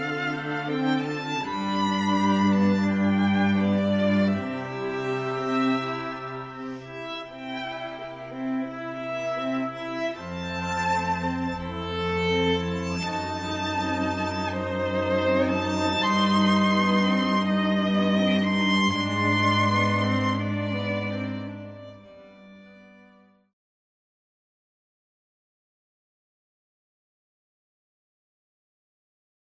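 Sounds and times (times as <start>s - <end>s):
prelude in C major on pan strings: 0.0s - 23.5s.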